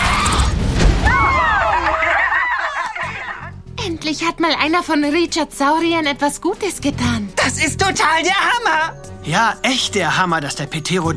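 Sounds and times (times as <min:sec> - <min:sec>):
rumbling explosion of flying object: 0:00.2 - 0:02.2
laughter: 0:01.5 - 0:03.6
speech: 0:04.1 - 0:11.1.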